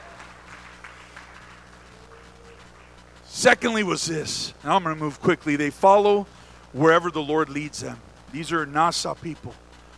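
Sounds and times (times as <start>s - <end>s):
audience clapping: 0.0s - 3.0s
low constant hum: 0.0s - 9.9s
speech: 3.4s - 9.6s.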